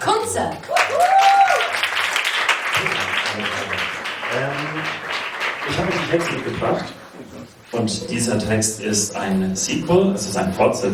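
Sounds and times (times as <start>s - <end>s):
speech: 0.4s - 1.1s, 5.7s - 10.9s
audience applause: 0.6s - 7.0s.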